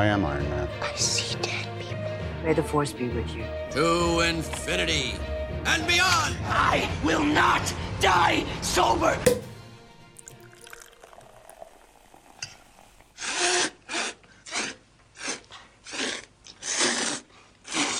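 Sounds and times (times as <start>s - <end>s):
speech: 0.0s - 1.8s, 2.4s - 9.5s
noodle slurping: 10.6s - 17.9s.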